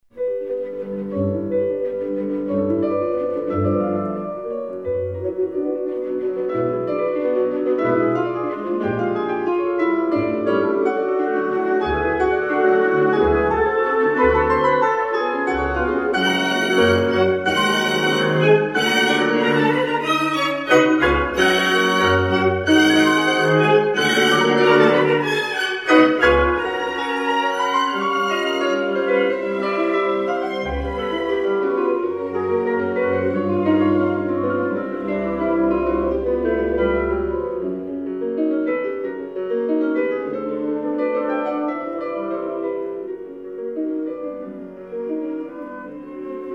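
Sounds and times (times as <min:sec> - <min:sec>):
ballade for piano and orchestra: 0:00.0 - 0:46.5.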